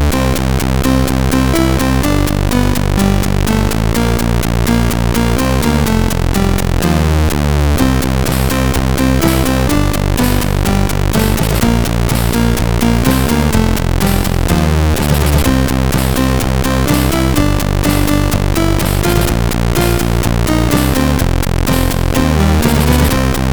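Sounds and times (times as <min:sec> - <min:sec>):
MOS 6581 chip sound: 0:00.1 - 0:23.5.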